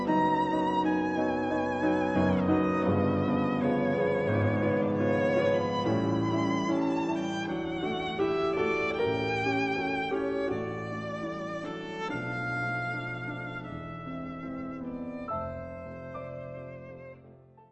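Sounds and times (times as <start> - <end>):
piano playing a nocturne: 0.0 - 17.6
violin playing a nocturne: 0.0 - 17.6.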